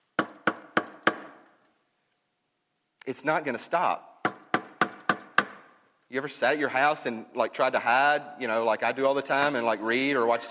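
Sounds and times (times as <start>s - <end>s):
knocking on a door: 0.2s - 1.4s, 4.2s - 5.7s
speech: 3.1s - 4.1s, 6.1s - 10.4s.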